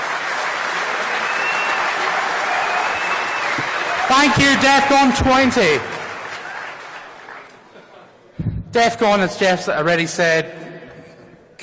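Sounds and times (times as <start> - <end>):
audience applause: 0.0 - 8.0
speech: 4.1 - 5.9, 8.8 - 10.6.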